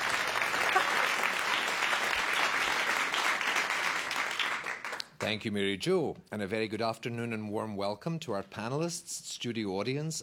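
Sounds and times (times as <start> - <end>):
studio audience applause at an opera quiz show: 0.0 - 5.3
speech: 5.2 - 10.2.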